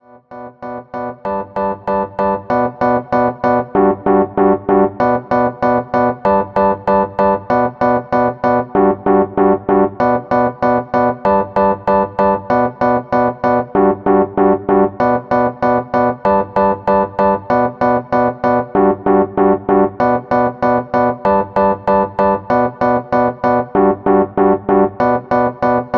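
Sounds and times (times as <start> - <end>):
Rhodes electric piano hip hop chords: 0.6 - 25.9.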